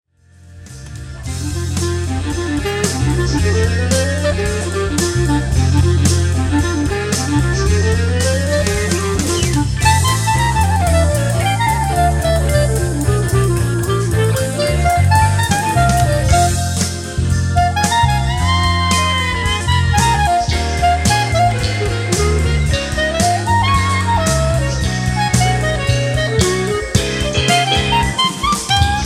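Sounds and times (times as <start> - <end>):
clarinet: 1.2 - 29.0.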